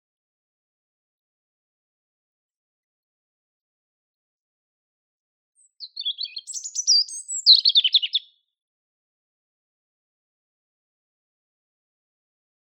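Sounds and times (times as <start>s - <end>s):
European robin Erithacus rubecula singing: 5.6s - 8.4s.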